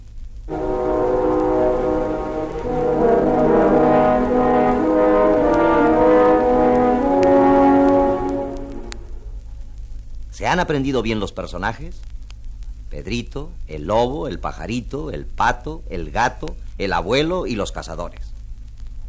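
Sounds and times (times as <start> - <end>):
three French horns playing a dark ominous theme: 0.5 - 9.4
speech: 10.5 - 12.1, 12.9 - 18.3.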